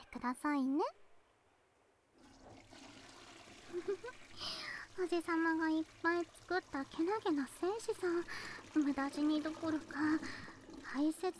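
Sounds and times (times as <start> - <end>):
speech: 0.1 - 1.0, 3.7 - 11.3
toilet flushing into the bowl: 2.2 - 11.3.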